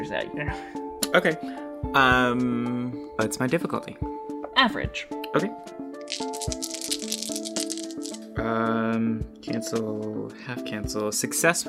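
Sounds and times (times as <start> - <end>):
speech: 0.0 - 6.8, 8.4 - 11.6
music with sustained tones: 0.0 - 11.6
dice being rolled: 6.0 - 8.3.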